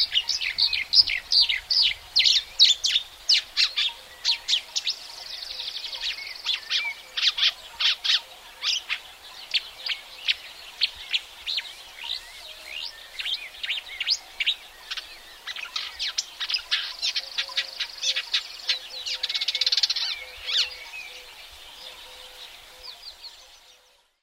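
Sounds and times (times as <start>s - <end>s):
marsh warbler singing: 0.0s - 24.2s.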